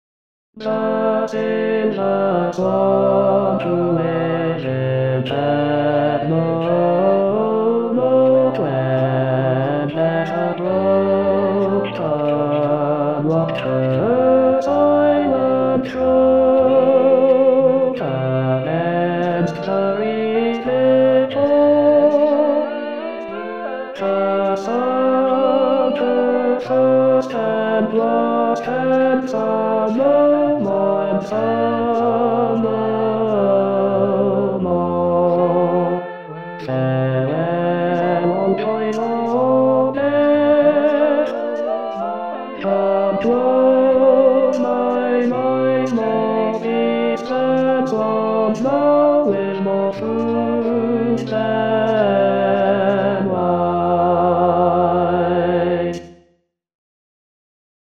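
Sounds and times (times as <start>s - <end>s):
tenor singing: 0.6s - 56.2s.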